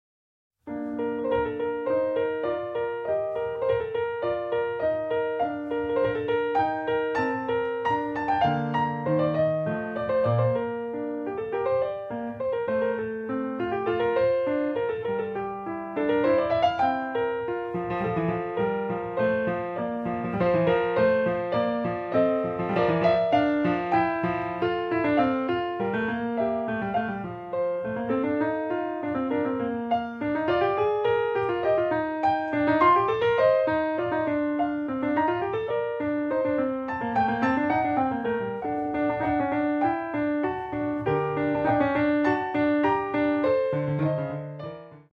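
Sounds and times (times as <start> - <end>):
partita piece: 0.7 - 45.1.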